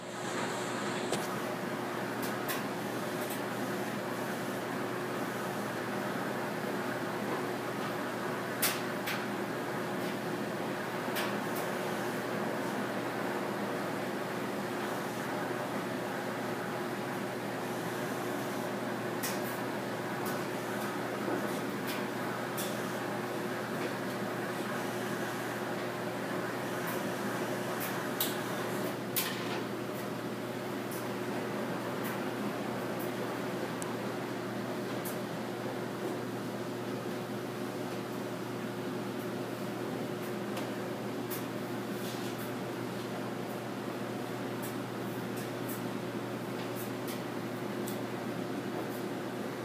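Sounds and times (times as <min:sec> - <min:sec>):
laundry: 0:00.0 - 0:49.6.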